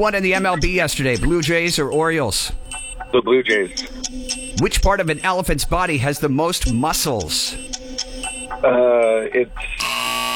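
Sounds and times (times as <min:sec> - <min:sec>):
speech: 0:00.0 - 0:07.8, 0:08.6 - 0:10.0
loud harsh quiz buzzer: 0:09.8 - 0:10.3.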